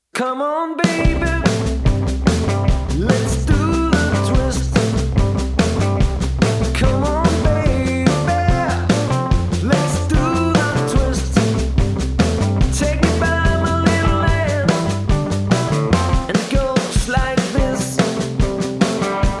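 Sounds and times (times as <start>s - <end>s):
backing music: 0.8s - 19.3s.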